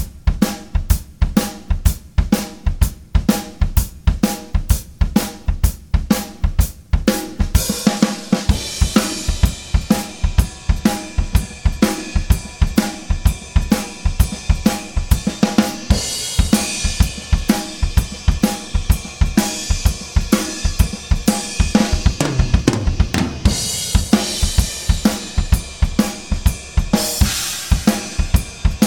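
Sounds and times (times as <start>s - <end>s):
drum solo recorded with ORTF overheads: 0.0s - 28.8s.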